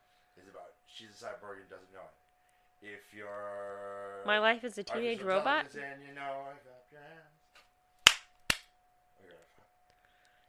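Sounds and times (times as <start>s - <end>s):
faint steady hum: 0.0s - 10.4s
speech: 0.9s - 7.4s
hand claps: 8.0s - 8.7s.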